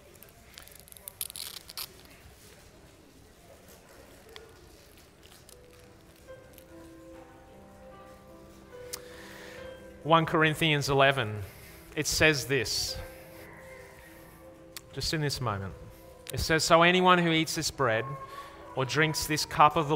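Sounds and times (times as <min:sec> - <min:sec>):
foil peeled back from communion elements, crinkling and tearing: 0:00.0 - 0:02.8, 0:04.1 - 0:06.8
speech: 0:10.1 - 0:13.1, 0:15.0 - 0:19.9.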